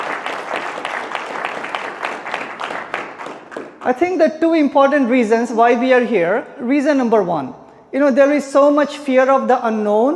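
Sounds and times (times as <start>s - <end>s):
audience applause: 0.0s - 3.8s
speech: 3.9s - 10.1s.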